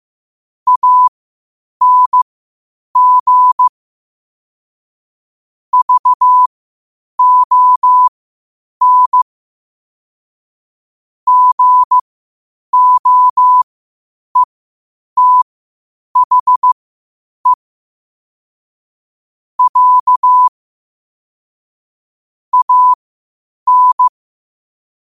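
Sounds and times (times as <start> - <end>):
morse code at 5 wpm: 0.7 - 1.1, 1.8 - 2.2, 3.0 - 3.7, 5.8 - 6.5, 7.2 - 8.1, 8.8 - 9.2, 11.3 - 12.0, 12.8 - 13.6, 15.2 - 15.4, 16.2 - 16.8, 19.6 - 20.5, 22.5 - 23.0, 23.7 - 24.1.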